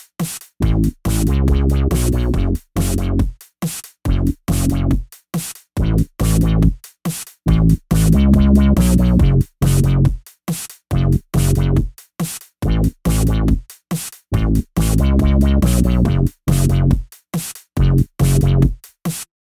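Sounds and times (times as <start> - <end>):
bass: 0.6 - 3.3, 4.1 - 5.0, 5.8 - 6.8, 7.5 - 10.2, 10.9 - 11.9, 12.6 - 13.6, 14.3 - 17.0, 17.8 - 18.8.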